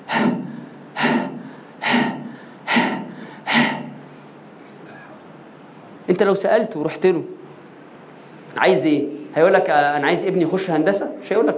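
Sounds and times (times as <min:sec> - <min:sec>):
voice imitating gasping breath of a hospital patient on oxygen machines: 0:00.0 - 0:04.0
speech: 0:06.1 - 0:07.4, 0:08.6 - 0:11.5.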